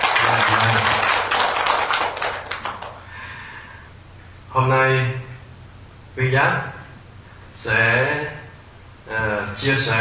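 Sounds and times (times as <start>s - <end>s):
crowd clapping: 0.0s - 3.1s
speech: 4.6s - 5.3s, 6.2s - 6.7s, 7.6s - 8.4s, 9.1s - 9.9s.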